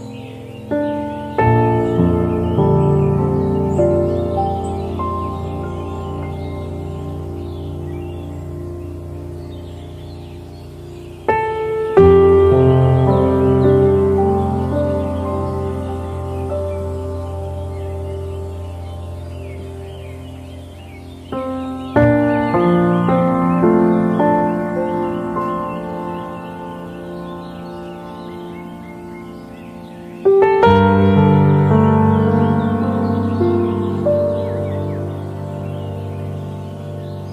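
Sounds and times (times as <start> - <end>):
relaxing bird sounds: 0.0 - 37.3
relaxing piano: 0.0 - 37.3.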